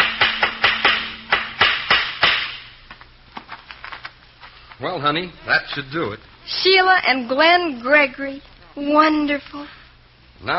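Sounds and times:
hammer nailing up a sign outside a house: 0:00.0 - 0:02.6
speech: 0:04.8 - 0:09.8, 0:10.4 - 0:10.5.

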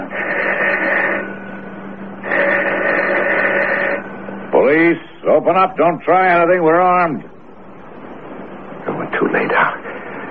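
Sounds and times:
electric doorbell buzzer: 0:00.0 - 0:04.2
speech: 0:04.8 - 0:07.3, 0:09.3 - 0:09.7.

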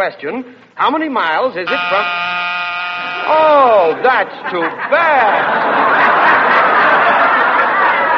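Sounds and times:
speech: 0:00.0 - 0:02.4, 0:03.0 - 0:06.7
game show buzzer: 0:01.6 - 0:04.0
laughter: 0:03.0 - 0:08.1.

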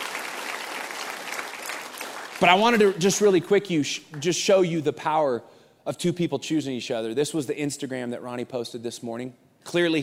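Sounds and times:
audience applause: 0:00.0 - 0:03.3
speech: 0:02.4 - 0:10.0.

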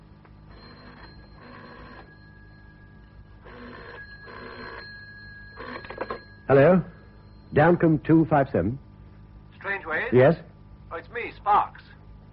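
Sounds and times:
old telephone bell ringing: 0:00.4 - 0:07.8
speech: 0:06.5 - 0:06.9, 0:07.5 - 0:08.8, 0:10.1 - 0:10.5.

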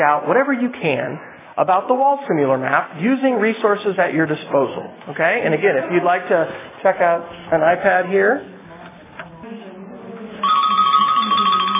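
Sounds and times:
speech: 0:00.0 - 0:08.5
timer alarm going off: 0:10.4 - 0:11.7.

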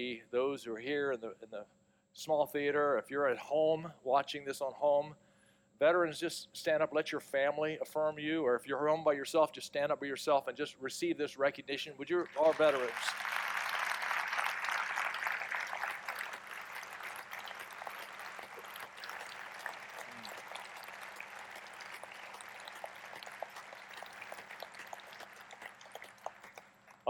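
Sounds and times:
speech: 0:00.0 - 0:13.4
audience applause: 0:12.2 - 0:27.0.

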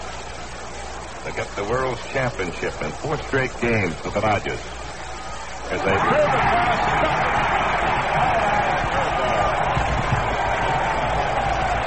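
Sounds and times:
speech: 0:01.2 - 0:04.8, 0:05.7 - 0:08.3
big stadium crowd roaring in a standing ovation at the World Series: 0:05.1 - 0:11.8.

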